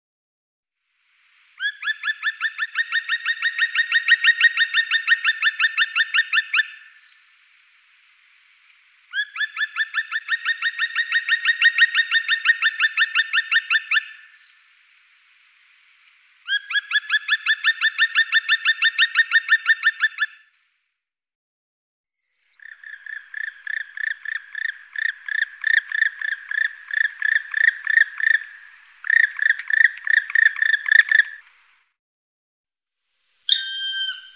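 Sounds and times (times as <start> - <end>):
black woodpecker whistled calls: 1.6 - 7.2, 9.1 - 14.6, 16.5 - 20.4, 22.5 - 31.4, 33.5 - 34.3.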